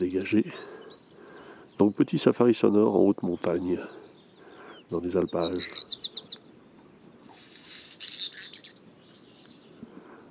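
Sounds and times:
speech: 0:00.0 - 0:00.7, 0:01.8 - 0:04.0, 0:04.9 - 0:06.0
black redstart singing at dawn: 0:00.0 - 0:10.2.

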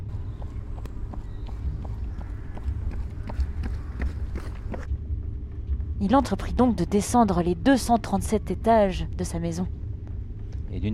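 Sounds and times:
running footsteps of someone jogging: 0:00.0 - 0:04.9
continuous low rumble: 0:00.0 - 0:10.9
speech: 0:06.0 - 0:09.8, 0:10.7 - 0:10.9.

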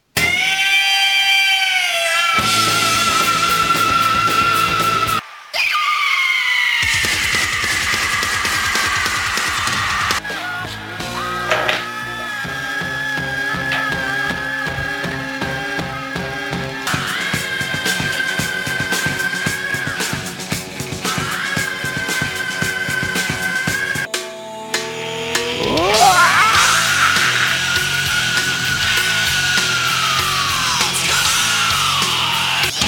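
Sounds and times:
screams: 0:00.1 - 0:24.1, 0:24.8 - 0:32.8.

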